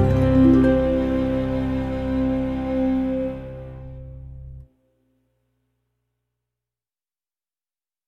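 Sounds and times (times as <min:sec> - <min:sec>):
chanson: 0:00.0 - 0:04.6.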